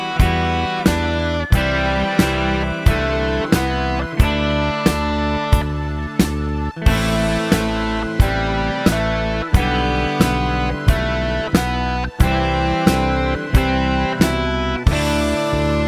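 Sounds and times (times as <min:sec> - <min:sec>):
drums: 0:00.0 - 0:15.8.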